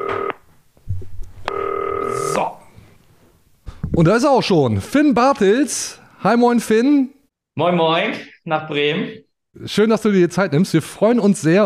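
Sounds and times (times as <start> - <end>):
telephone ringing tone: 0.0 - 0.4, 1.5 - 2.4
speech: 4.0 - 11.6.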